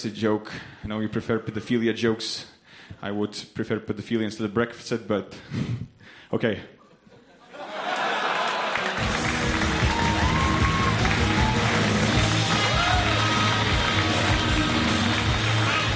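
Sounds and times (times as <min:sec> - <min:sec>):
speech: 0:00.0 - 0:06.8
laughter: 0:07.0 - 0:09.4
crowd cheering and shouting: 0:07.6 - 0:15.9
audience applause: 0:07.7 - 0:15.9.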